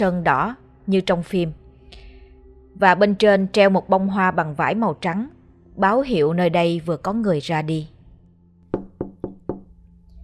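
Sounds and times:
speech: 0:00.0 - 0:01.6, 0:02.8 - 0:08.0
man knocking on a large black wooden door: 0:08.7 - 0:09.7.

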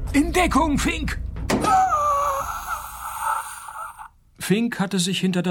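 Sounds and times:
speech: 0:00.1 - 0:01.3, 0:04.5 - 0:05.5
injured young man whimpering: 0:01.7 - 0:04.1.

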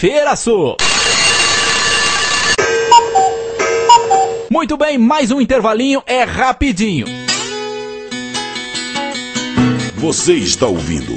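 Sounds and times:
speech: 0:00.0 - 0:01.3, 0:04.5 - 0:07.2, 0:09.6 - 0:11.1
alarm clock ringing: 0:00.8 - 0:04.5.

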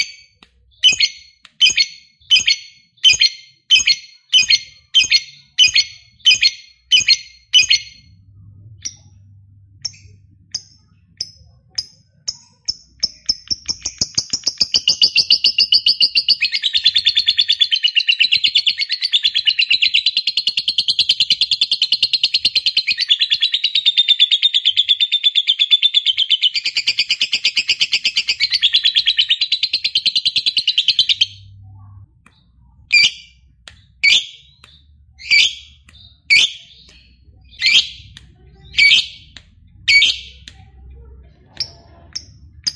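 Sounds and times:
lovebird chirping: 0:00.0 - 0:40.5
faint low hum: 0:07.7 - 0:13.7, 0:31.0 - 0:42.7.

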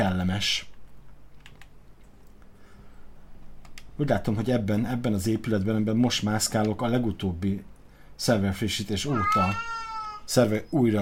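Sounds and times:
speech: 0:00.2 - 0:00.7, 0:04.0 - 0:11.0
video game cat meowing: 0:09.1 - 0:10.3.

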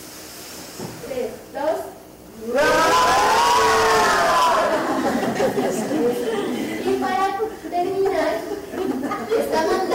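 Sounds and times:
speech: 0:01.2 - 0:02.8
group of voices shouting together: 0:02.4 - 0:05.1
laughter: 0:04.5 - 0:09.6.

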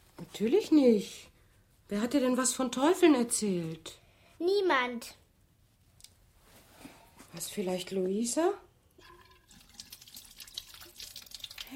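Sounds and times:
speech: 0:00.4 - 0:01.3, 0:01.9 - 0:05.2, 0:07.4 - 0:08.6
running water splashing as someone washes their face: 0:09.0 - 0:11.7.

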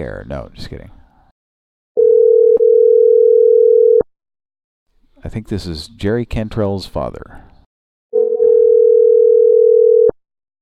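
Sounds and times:
speech: 0:00.0 - 0:01.0, 0:05.2 - 0:07.5
telephone dial tone as a call is placed: 0:02.0 - 0:04.0, 0:08.2 - 0:10.2.

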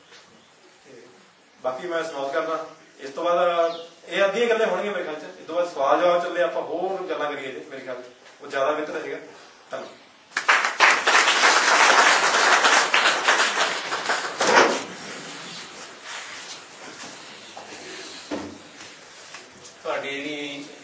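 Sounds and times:
speech: 0:01.6 - 0:10.0
audience applause after a talk at a literature seminar: 0:10.3 - 0:14.9.

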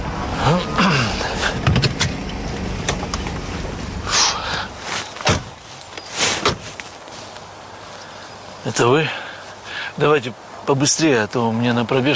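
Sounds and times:
car slowing down and stopping: 0:00.0 - 0:07.5
sharp clicks and thumps: 0:01.6 - 0:03.4
speech: 0:08.7 - 0:09.2, 0:10.0 - 0:12.1.

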